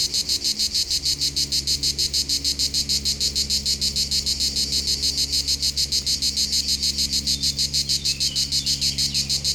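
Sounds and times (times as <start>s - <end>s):
cicadas buzzing on a hot summer day in France: 0.0s - 9.5s.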